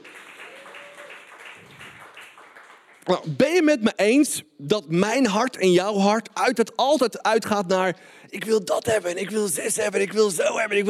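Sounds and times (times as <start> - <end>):
audience applause for the stage manager: 0.0 - 3.2
speech: 3.1 - 10.8.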